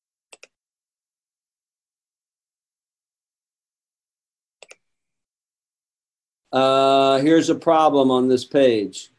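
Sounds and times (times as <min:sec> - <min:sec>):
computer mouse clicks: 0:00.3 - 0:00.6, 0:04.6 - 0:04.9
speech: 0:06.5 - 0:09.1.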